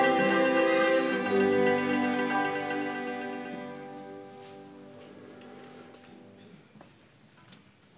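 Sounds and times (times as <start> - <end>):
orchestra playing: 0.0 - 5.8.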